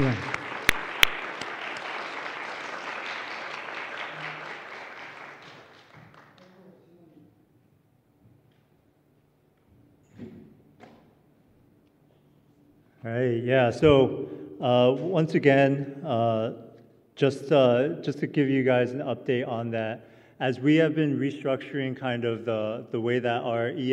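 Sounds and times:
audience applause: 0:00.0 - 0:06.6
speech: 0:13.1 - 0:16.6, 0:17.2 - 0:23.9.

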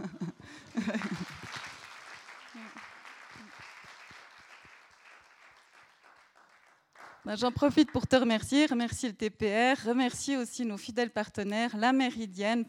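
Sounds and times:
laughter: 0:00.0 - 0:01.8
audience applause: 0:00.5 - 0:07.2
speech: 0:00.8 - 0:01.2, 0:07.3 - 0:12.6.

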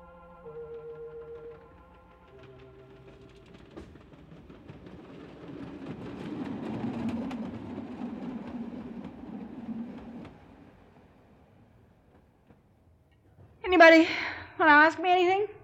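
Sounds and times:
subway rail clickety-clack clicks: 0:00.0 - 0:13.8
subway train rumbling past: 0:00.0 - 0:14.0
speech: 0:13.8 - 0:15.5.

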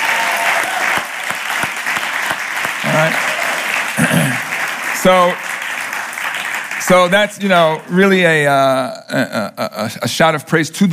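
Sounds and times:
audience hand clapping: 0:00.0 - 0:08.5
speech: 0:05.0 - 0:05.5, 0:06.9 - 0:10.9.

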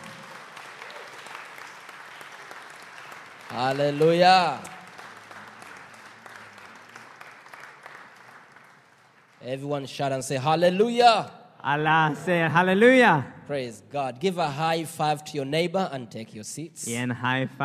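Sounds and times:
audience clapping hands: 0:00.0 - 0:10.2
speech: 0:03.5 - 0:04.7, 0:09.5 - 0:17.6.

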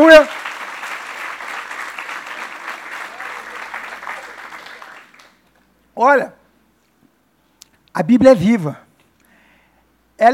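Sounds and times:
audience applause: 0:00.0 - 0:05.6
speech: 0:06.0 - 0:06.4, 0:08.0 - 0:08.8.

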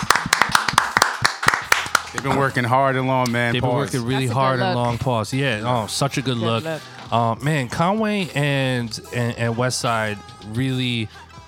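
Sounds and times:
round of applause, hands clapping: 0:00.0 - 0:03.4
speech: 0:02.2 - 0:11.3.

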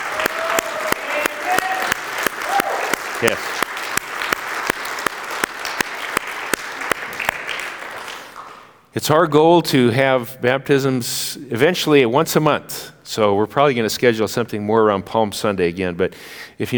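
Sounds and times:
audience applause: 0:00.0 - 0:08.9
speech: 0:03.2 - 0:03.6, 0:09.0 - 0:16.7.

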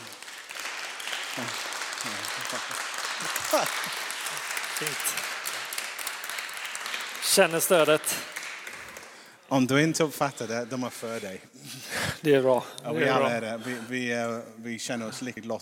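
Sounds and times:
audience applause: 0:00.0 - 0:09.4
speech: 0:01.4 - 0:04.1, 0:04.8 - 0:05.3, 0:07.4 - 0:08.3, 0:09.5 - 0:15.6.

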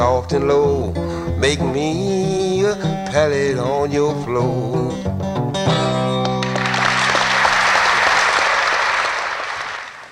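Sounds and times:
speech: 0:00.0 - 0:06.1
last guitar chord ringing out: 0:05.2 - 0:06.8
audience applause after a live acoustic blues song: 0:06.4 - 0:10.1.

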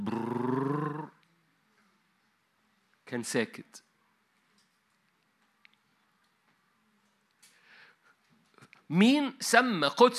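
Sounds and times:
voice imitating a running motor: 0:00.0 - 0:01.1
speech: 0:03.1 - 0:03.9, 0:08.9 - 0:10.1.

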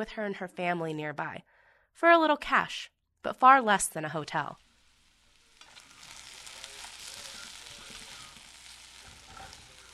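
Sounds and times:
speech: 0:00.0 - 0:04.6
bacon and eggs frying in a pan in a New Mexico home kitchen: 0:03.6 - 0:09.9.

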